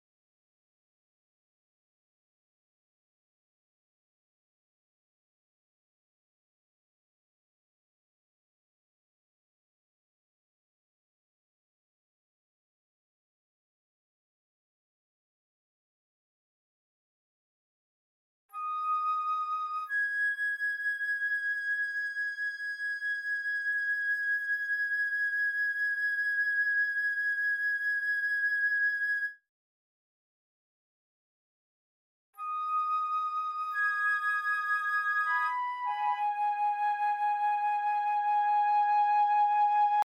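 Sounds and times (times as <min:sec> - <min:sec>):
flute: 0:18.5 - 0:29.5, 0:32.4 - 0:40.0.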